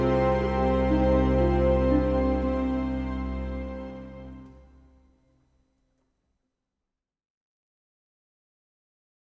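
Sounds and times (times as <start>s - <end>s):
strings: 0.0s - 4.9s.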